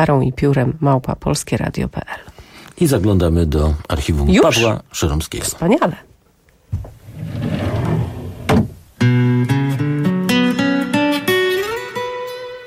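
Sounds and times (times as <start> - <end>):
speech: 0.0 - 6.1
wooden drawer scraping open: 6.7 - 8.8
bright melodic tune with sustained plucked notes: 9.0 - 12.6.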